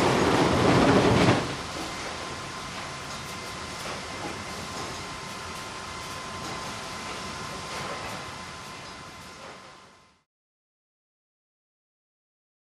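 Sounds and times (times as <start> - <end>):
machinery in a sawmill: 0.0 - 10.0.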